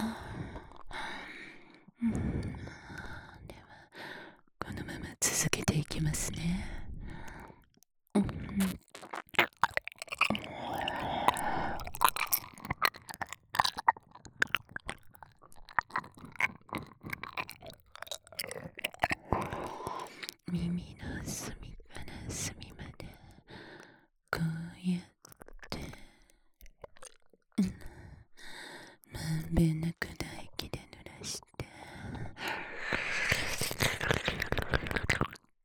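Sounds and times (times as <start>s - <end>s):
oral sex sounds: 0.0s - 35.6s
ear licking sounds: 8.6s - 20.5s, 26.6s - 27.3s, 32.4s - 35.5s.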